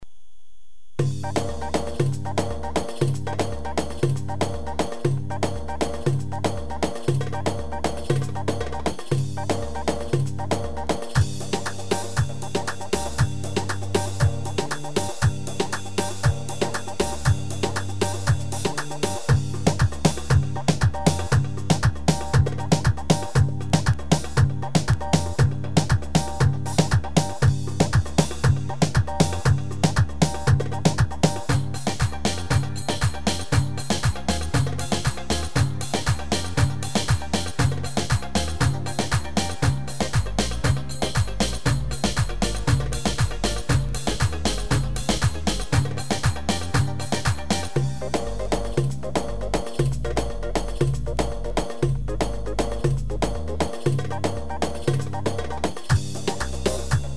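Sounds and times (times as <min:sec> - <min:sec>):
2/4 Turkish oyun havasi dance music: 0:01.0 - 0:57.1.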